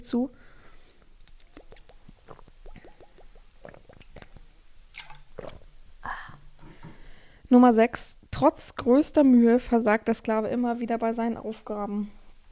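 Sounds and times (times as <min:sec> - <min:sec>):
speech: 0:00.0 - 0:00.5, 0:07.5 - 0:12.2
person sipping a drink: 0:00.7 - 0:07.1
gulping and swallowing: 0:01.2 - 0:06.4.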